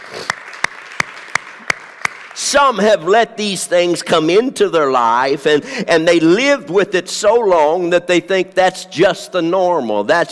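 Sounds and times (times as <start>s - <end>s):
audience clapping in unison: 0.0s - 2.9s
speech: 2.5s - 10.3s.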